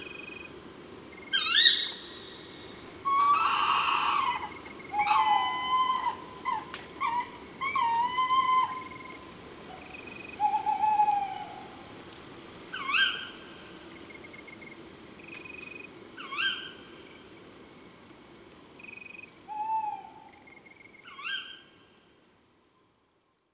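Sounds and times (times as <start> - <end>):
tawny owl calling: 1.3 - 11.7, 12.7 - 13.3, 19.5 - 20.5, 21.1 - 21.6.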